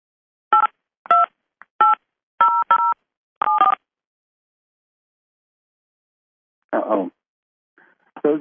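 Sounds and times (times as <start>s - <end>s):
telephone keypad DTMF tones entering a PIN: 0.6s - 3.8s.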